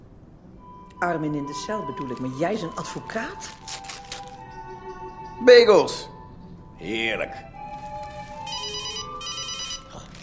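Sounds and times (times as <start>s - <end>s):
speech: 1.0s - 3.9s, 5.4s - 6.1s, 6.8s - 7.5s
mobile phone ringtone ringing: 7.7s - 10.2s.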